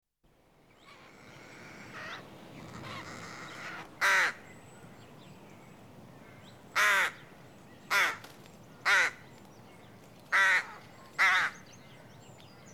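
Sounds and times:
rook caw: 0:00.8 - 0:04.4, 0:06.3 - 0:07.3, 0:07.9 - 0:08.2, 0:08.8 - 0:09.2, 0:10.3 - 0:11.6.

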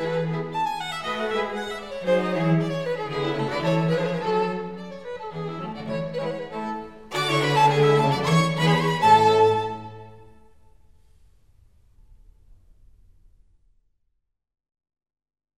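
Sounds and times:
string quartet playing a rondeau allegro: 0:00.0 - 0:10.4.

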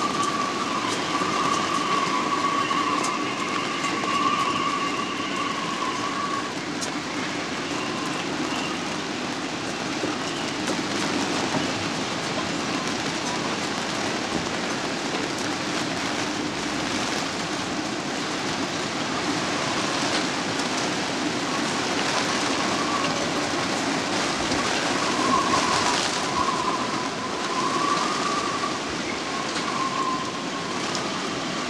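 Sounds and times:
gale force wind on a yacht recorded in the cockpit: 0:00.0 - 0:31.6
rain on a yacht recorded in the cockpit: 0:00.0 - 0:31.6.

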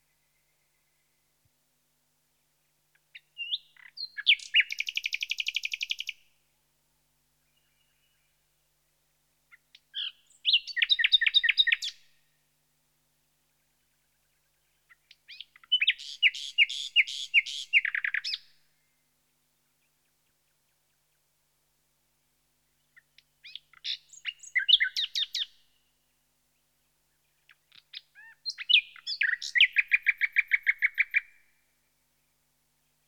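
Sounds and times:
nightingale Luscinia Megarhyncho singing: 0:02.9 - 0:06.2, 0:09.5 - 0:12.1, 0:14.1 - 0:18.6, 0:22.7 - 0:25.8, 0:27.2 - 0:31.6.

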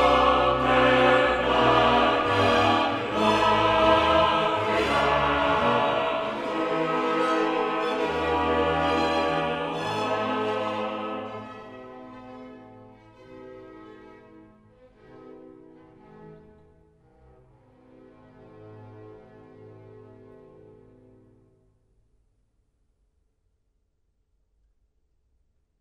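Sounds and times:
choral mass movement in C minor: 0:00.0 - 0:12.6.

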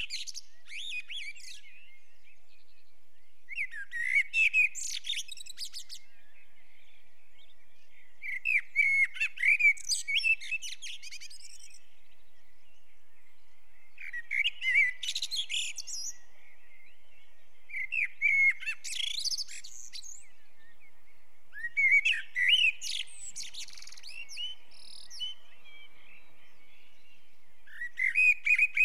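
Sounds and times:
blackbird Turdus merula singing in a quiet town garden: 0:00.0 - 0:28.8
dawn chorus of British birds: 0:00.0 - 0:28.8.

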